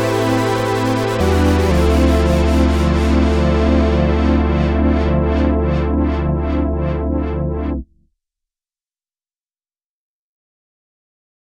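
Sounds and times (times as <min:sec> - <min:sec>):
Juno 106 synthesizer: 0:00.0 - 0:07.9.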